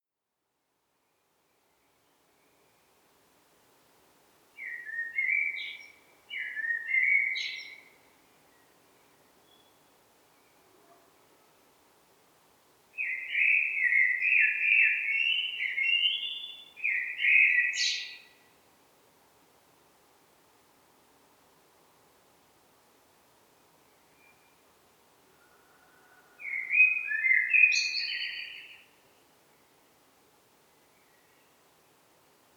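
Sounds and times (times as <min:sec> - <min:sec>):
common blackbird singing: 0:04.6 - 0:07.8, 0:13.0 - 0:18.3, 0:26.4 - 0:29.0.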